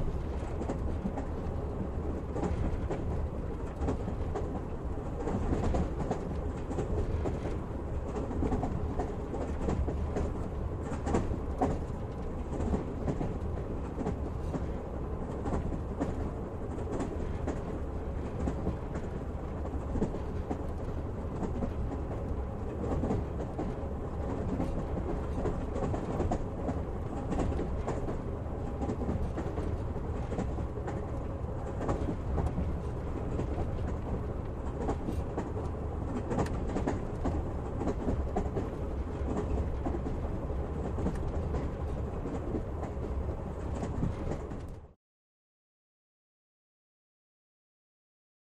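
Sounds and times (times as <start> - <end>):
train interior: 0.0 - 45.0.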